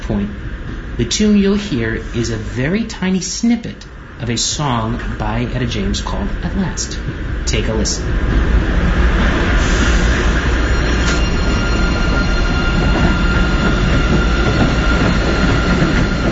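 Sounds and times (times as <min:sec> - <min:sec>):
train pulling out of a station: 0:00.0 - 0:16.3
speech: 0:00.1 - 0:08.6
faint sustained high squeals from train wheels: 0:09.6 - 0:16.3.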